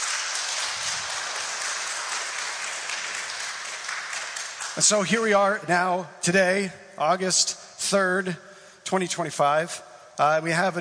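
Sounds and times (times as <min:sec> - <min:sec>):
audience applause: 0:00.0 - 0:05.1
speech: 0:04.8 - 0:10.7.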